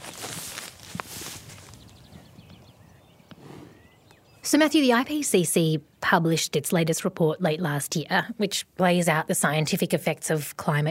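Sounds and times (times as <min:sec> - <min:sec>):
cattle eating long grass: 0:00.0 - 0:02.0
speech: 0:04.5 - 0:10.8.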